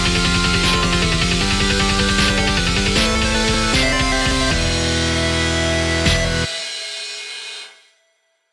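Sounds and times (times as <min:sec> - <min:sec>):
8-bit music: 0:00.0 - 0:06.5.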